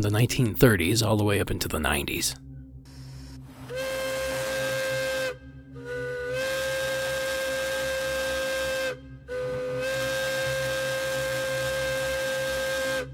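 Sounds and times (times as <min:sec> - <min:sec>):
speech: 0:00.0 - 0:02.4
Hancock air whistle on a train: 0:02.9 - 0:13.1.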